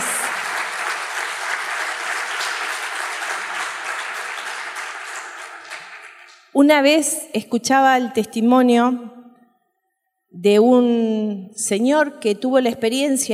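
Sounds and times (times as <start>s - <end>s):
audience applause: 0.0s - 6.5s
speech: 6.6s - 9.2s, 10.4s - 13.3s.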